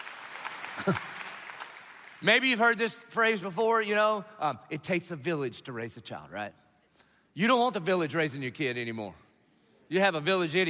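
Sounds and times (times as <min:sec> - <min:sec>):
audience applause: 0:00.0 - 0:02.2
speech: 0:00.8 - 0:01.1, 0:02.2 - 0:06.6, 0:07.4 - 0:09.2, 0:09.9 - 0:10.6.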